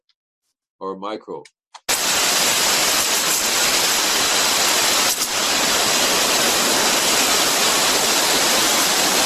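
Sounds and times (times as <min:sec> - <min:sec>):
speech: 0:00.8 - 0:01.6
high-pressure arborist sprayer spraying: 0:01.8 - 0:09.2.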